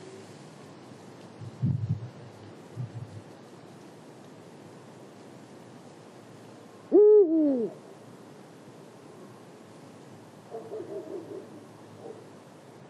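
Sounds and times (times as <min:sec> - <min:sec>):
Eurasian eagle-owl Bubo bubo booming hoot at Marianka, Slovakia: 0:06.9 - 0:07.8.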